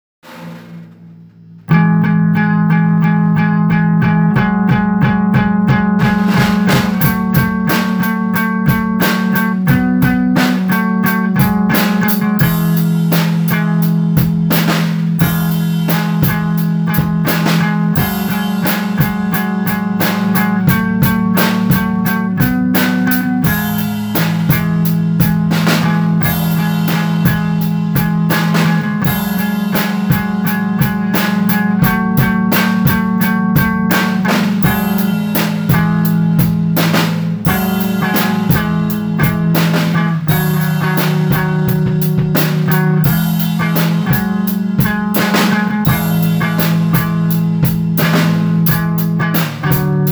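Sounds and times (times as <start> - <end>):
improvisation in C minor: 0.3 - 50.1.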